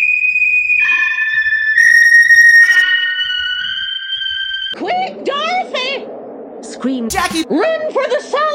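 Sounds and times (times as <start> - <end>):
sharp whistling sound: 0.0 - 4.8
speech: 6.8 - 8.4.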